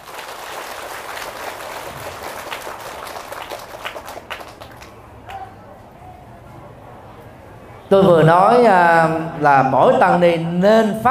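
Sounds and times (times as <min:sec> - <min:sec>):
audience applause: 0:00.0 - 0:05.7
speech: 0:07.9 - 0:11.0.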